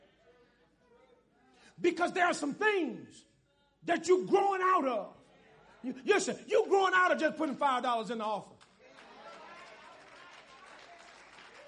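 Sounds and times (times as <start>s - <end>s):
speech: 1.8s - 5.2s, 5.8s - 8.6s
audience clapping: 8.6s - 11.6s.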